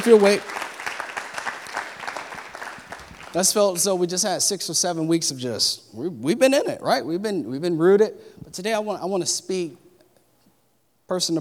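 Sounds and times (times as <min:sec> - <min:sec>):
speech: 0:00.0 - 0:00.6, 0:03.3 - 0:09.8, 0:11.1 - 0:11.4
audience hand clapping: 0:00.0 - 0:03.9.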